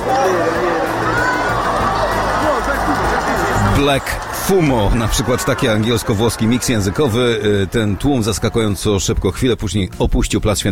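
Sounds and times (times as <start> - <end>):
laughter: 0.0 - 9.2
large crowd roaring and murmuring in square: 0.0 - 9.6
speech: 3.8 - 10.7.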